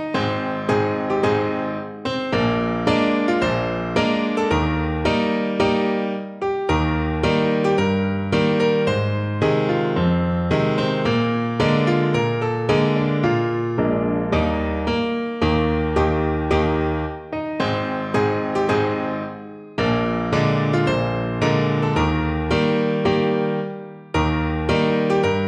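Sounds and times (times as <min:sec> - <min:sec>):
piano: 0:00.0 - 0:25.4.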